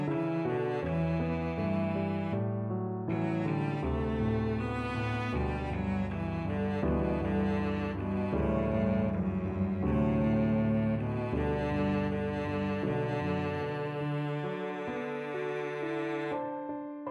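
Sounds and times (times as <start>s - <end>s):
cello: 0.0s - 17.0s.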